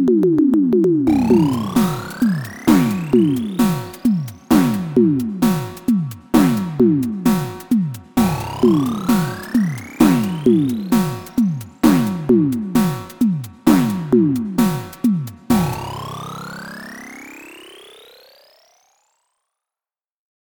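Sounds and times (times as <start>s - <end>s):
synth drum: 0.0s - 16.5s.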